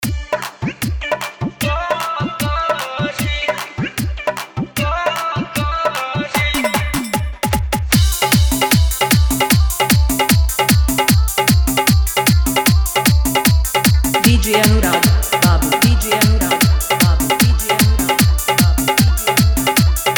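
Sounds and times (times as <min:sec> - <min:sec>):
hard dholki bass mix: 0:00.0 - 0:20.1.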